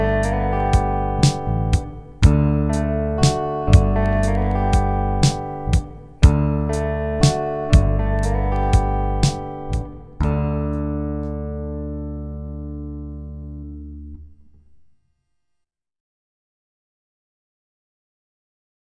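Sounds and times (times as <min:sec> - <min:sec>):
D and G chord melody: 0:00.0 - 0:13.8.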